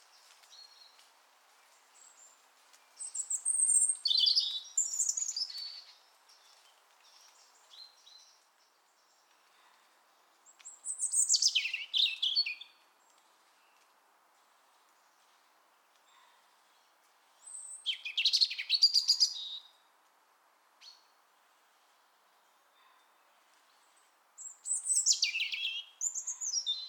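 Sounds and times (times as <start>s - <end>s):
European robin singing: 2.9s - 9.4s, 10.4s - 12.8s, 17.4s - 19.7s, 22.7s - 26.8s.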